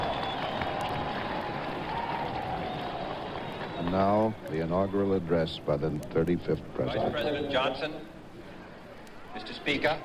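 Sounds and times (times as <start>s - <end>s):
large crowd cheering and applauding: 0.0s - 4.6s
speech: 3.8s - 8.1s, 9.4s - 10.0s.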